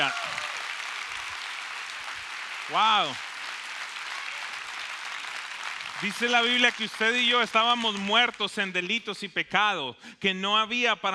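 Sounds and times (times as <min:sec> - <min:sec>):
audience applause: 0:00.0 - 0:08.8
speech: 0:02.7 - 0:03.3, 0:06.0 - 0:11.1.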